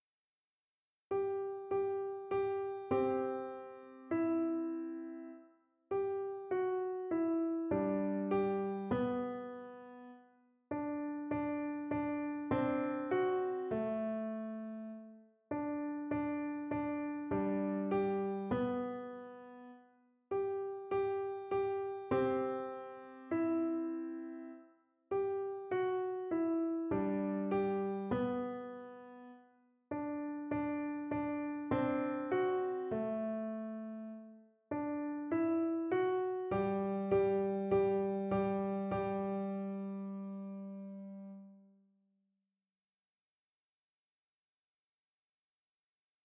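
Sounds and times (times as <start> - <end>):
easy piano: 1.1 - 41.7.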